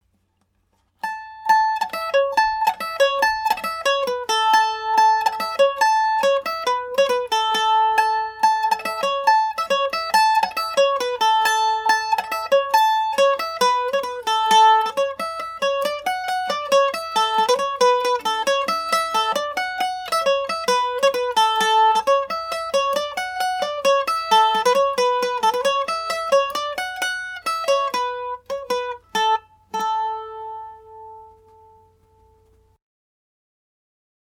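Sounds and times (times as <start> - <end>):
Irish mandolin in A major: 0.1 - 32.8.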